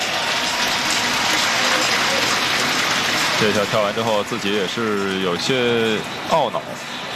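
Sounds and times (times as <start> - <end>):
audience applause: 0.0 - 5.6
speech: 3.4 - 7.0.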